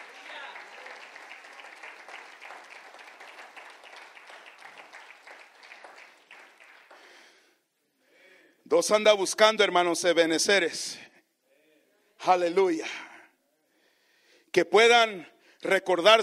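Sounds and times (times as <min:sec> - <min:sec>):
audience applauding: 0:00.0 - 0:07.4
speech: 0:08.7 - 0:11.0, 0:12.2 - 0:13.0, 0:14.6 - 0:16.2.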